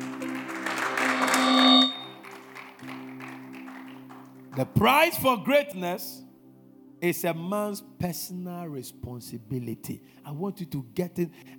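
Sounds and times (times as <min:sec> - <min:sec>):
audience clapping: 0:00.0 - 0:04.8
speech: 0:04.6 - 0:06.2, 0:07.0 - 0:11.5.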